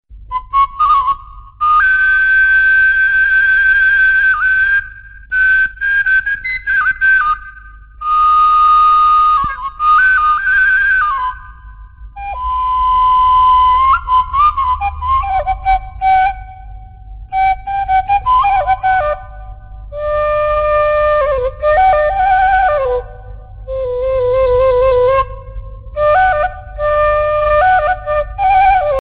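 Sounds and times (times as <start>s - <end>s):
Sundanese suling bamboo flute: 0.2s - 28.9s.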